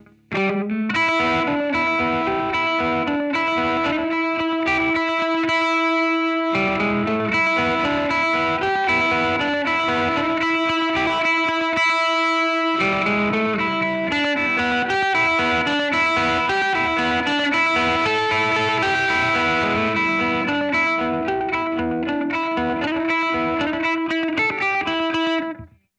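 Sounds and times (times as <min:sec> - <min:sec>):
country twang music: 0:00.0 - 0:25.7.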